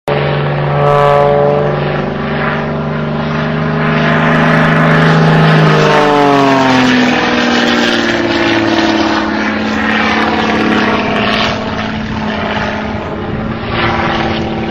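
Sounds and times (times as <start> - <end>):
Extra 300 aerobatic plane: 0.1 - 14.6.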